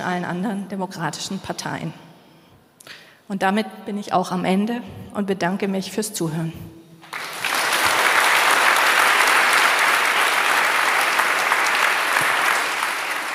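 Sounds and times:
speech: 0:00.0 - 0:02.1, 0:02.8 - 0:06.8
audience applauding a speaker: 0:07.0 - 0:13.3.

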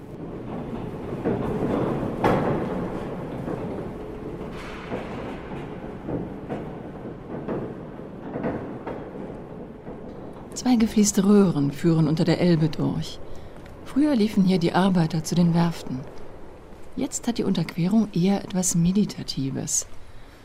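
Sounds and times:
old vehicle elevator cables whirring: 0:00.0 - 0:20.4
wooden gates of old vehicle elevator rattling: 0:00.0 - 0:20.4
speech: 0:10.6 - 0:13.3, 0:14.0 - 0:16.2, 0:17.0 - 0:20.0.

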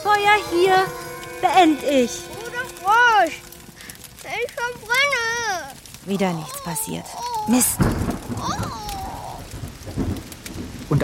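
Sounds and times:
sudden rain shower: 0:00.0 - 0:11.0
speech: 0:00.1 - 0:02.3, 0:02.9 - 0:03.5, 0:04.2 - 0:08.8.

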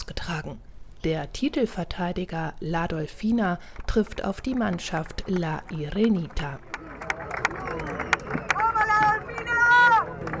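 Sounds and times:
speech: 0:00.3 - 0:06.7
large polo stadium crowd murmuring and shouting: 0:05.0 - 0:10.3.

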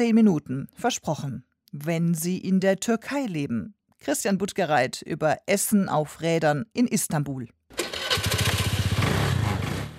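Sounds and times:
speech: 0:00.0 - 0:07.6
small motor scooter engine starting and puttering: 0:07.7 - 0:09.9.

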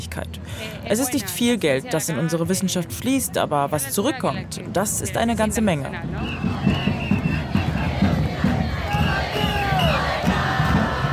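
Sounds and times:
speech: 0:00.0 - 0:06.8
whistles: 0:06.2 - 0:07.6, 0:09.4 - 0:10.1
huge protest crowd chanting in unison: 0:06.2 - 0:11.1
scattered shouts: 0:06.5 - 0:11.1.

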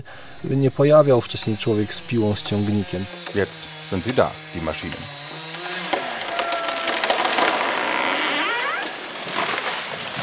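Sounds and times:
speech: 0:00.0 - 0:05.2
wood snapping and splintering: 0:05.5 - 0:10.2
fir tree falling: 0:05.6 - 0:10.2.

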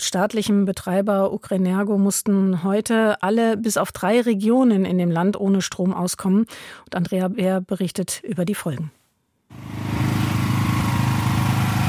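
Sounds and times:
speech: 0:00.0 - 0:09.8
power generator engine rattling: 0:09.5 - 0:11.8.

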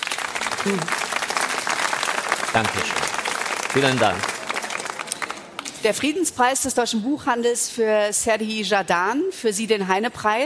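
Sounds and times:
audience applause: 0:00.0 - 0:05.7
speech: 0:00.6 - 0:01.0, 0:02.6 - 0:03.1, 0:03.7 - 0:04.4, 0:05.8 - 0:10.4.

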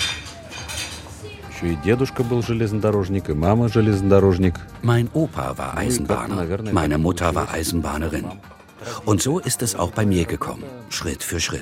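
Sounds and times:
cutlery and dishes clinking in a dining car: 0:00.0 - 0:01.2
speech: 0:01.6 - 0:11.6.

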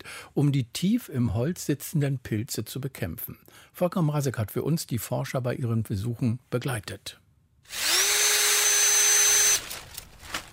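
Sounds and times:
speech: 0:00.4 - 0:07.9
cordless drill whirring: 0:07.7 - 0:10.1.

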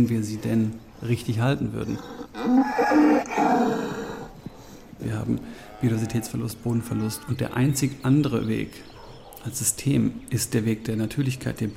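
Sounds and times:
speech: 0:00.0 - 0:04.1, 0:05.0 - 0:11.7
cow mooing: 0:01.9 - 0:04.3, 0:05.6 - 0:07.4.

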